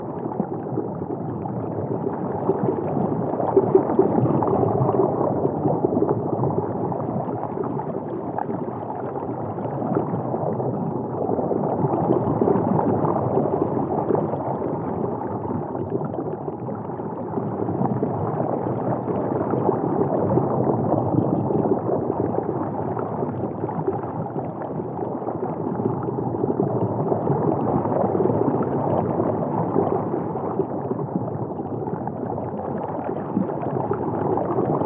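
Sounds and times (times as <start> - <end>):
underwater ambience: 0.0 - 34.8.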